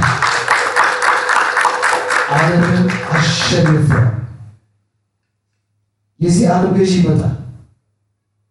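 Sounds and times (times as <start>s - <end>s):
church congregation clapping rhythmically: 0.0s - 4.4s
speech: 3.5s - 4.1s, 6.2s - 7.4s.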